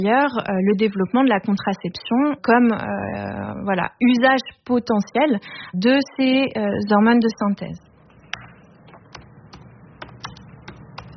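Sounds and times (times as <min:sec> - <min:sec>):
speech: 0:00.0 - 0:07.9
low hum: 0:00.0 - 0:11.1
keyboard typing notes of a conversation: 0:07.9 - 0:11.1.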